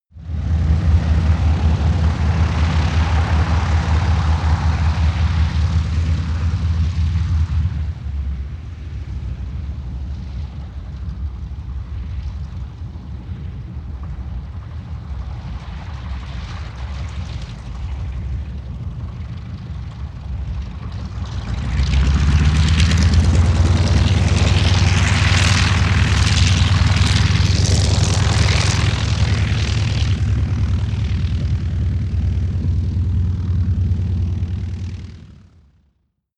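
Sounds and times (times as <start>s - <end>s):
Ju 52 propeller plane rolling: 0.2s - 35.8s.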